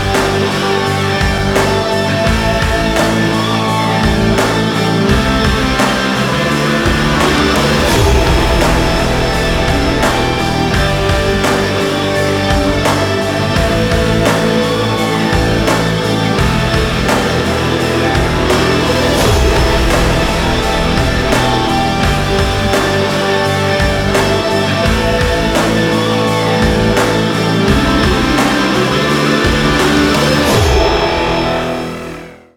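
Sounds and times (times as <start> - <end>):
action sport rock trailer music: 0.0 - 32.5.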